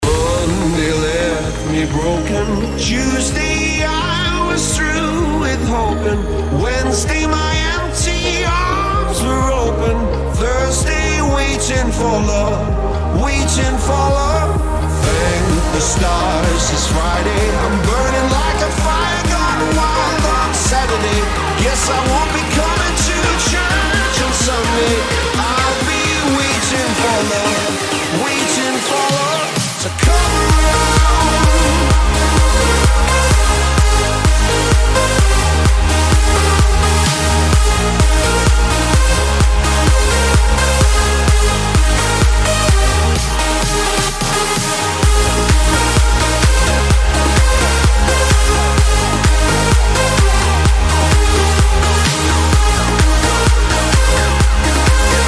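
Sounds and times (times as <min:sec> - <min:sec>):
progressive house remix: 0:00.0 - 0:55.2.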